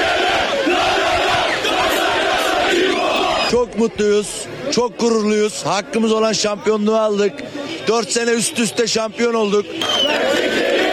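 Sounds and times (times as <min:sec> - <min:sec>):
Galatasaray fans cheering and shouting in Delikli Çınar Square, Denizli: 0:00.0 - 0:04.3, 0:07.3 - 0:10.9
speech: 0:03.8 - 0:10.7.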